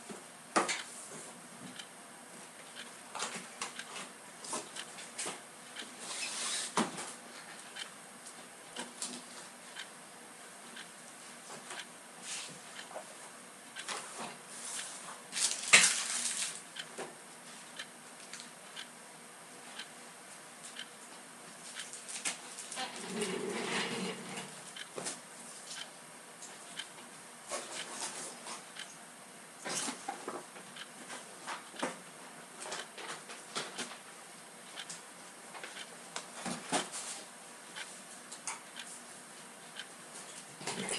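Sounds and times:
person cleaning room: 0.0 - 9.8, 10.5 - 17.8, 19.6 - 28.7, 29.4 - 34.3, 34.9 - 40.9
clock ticking: 2.7 - 2.9, 4.7 - 4.9, 7.7 - 8.0, 11.7 - 11.9, 17.7 - 18.0, 18.8 - 19.0, 19.8 - 20.0, 20.7 - 21.0, 24.8 - 25.0, 28.7 - 28.9, 30.8 - 31.0, 34.7 - 35.0, 35.6 - 35.9.

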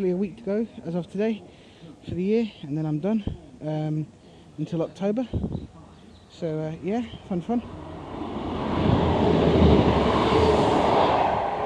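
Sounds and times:
speech: 0.0 - 7.9
train passing at speed: 7.4 - 11.6.

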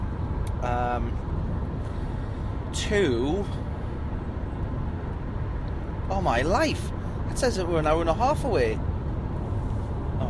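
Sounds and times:
car driving: 0.0 - 10.2
speech: 0.6 - 1.5, 2.8 - 3.7, 6.1 - 8.9.

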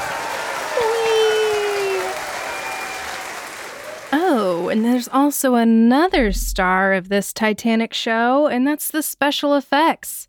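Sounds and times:
round of applause: 0.0 - 5.0
speech: 4.7 - 10.2.

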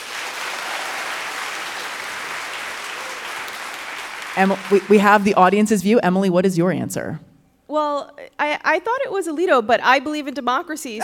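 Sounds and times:
audience clapping: 0.0 - 5.7
speech: 4.4 - 11.0.

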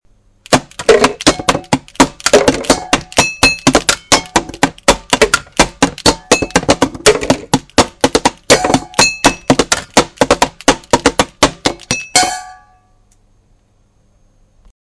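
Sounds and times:
drum: 0.5 - 12.6.

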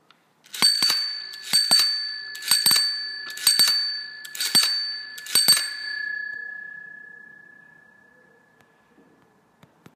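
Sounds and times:
bike bell ringing: 0.5 - 8.6.

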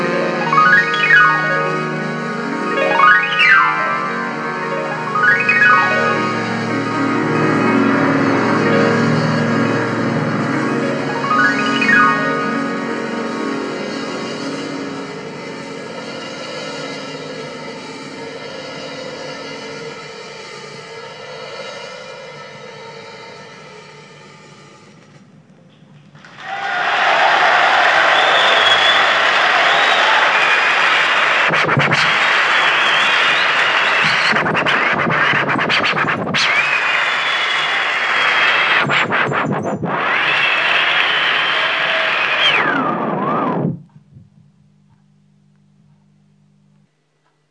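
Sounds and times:
homemade scratching applause: 0.2 - 14.9, 26.2 - 43.8.

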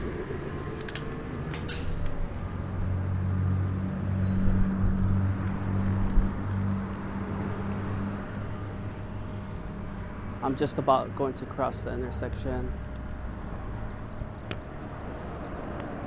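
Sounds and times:
bus passing: 0.0 - 16.0
speech: 10.4 - 12.9.

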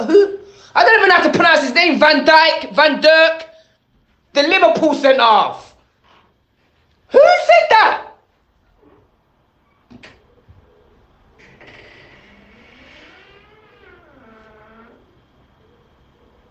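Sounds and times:
speech: 0.0 - 3.5, 4.4 - 5.6, 7.1 - 8.1
door creaking: 11.2 - 15.4.

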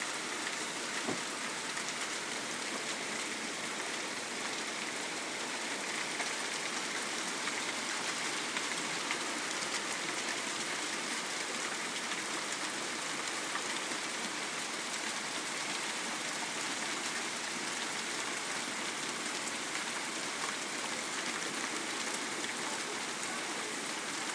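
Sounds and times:
rain: 0.0 - 24.3.

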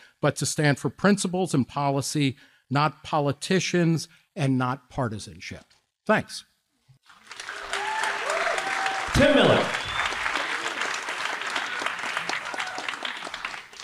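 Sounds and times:
speech: 0.2 - 6.5, 9.2 - 9.8
audience clapping: 7.0 - 13.8.

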